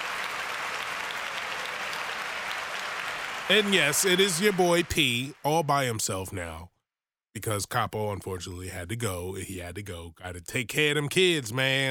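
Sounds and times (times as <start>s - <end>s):
applause for a choir: 0.0s - 6.1s
speech: 3.5s - 6.7s, 7.4s - 11.9s.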